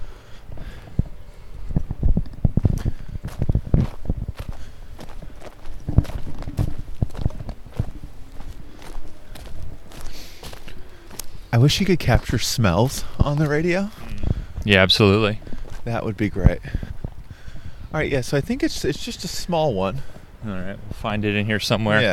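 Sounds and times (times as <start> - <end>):
footsteps crunching on a bark pathway: 2.6 - 14.7, 15.4 - 17.4
speech: 11.6 - 14.0, 14.6 - 16.8, 18.0 - 22.1.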